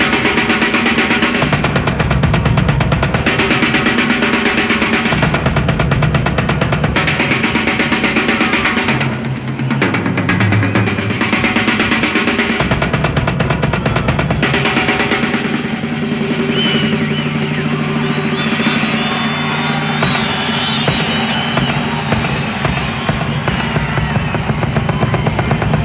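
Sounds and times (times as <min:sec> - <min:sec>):
drum solo: 0:00.0 - 0:25.8.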